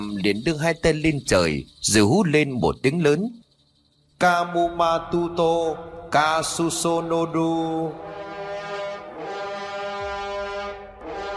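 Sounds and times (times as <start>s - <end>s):
speech: 0.0s - 3.4s, 4.2s - 8.2s
horn trumpet blasting: 7.6s - 11.3s.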